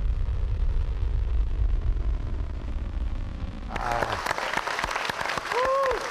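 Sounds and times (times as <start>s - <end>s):
low rocket rumble: 0.0s - 4.6s
applause in a control room: 3.7s - 6.0s
voices cheering and calling out: 3.7s - 6.0s.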